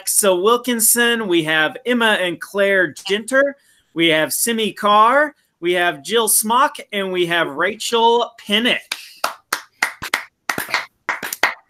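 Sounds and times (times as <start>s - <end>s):
speech: 0.0s - 9.0s
scattered hand claps from a small group: 8.9s - 11.6s.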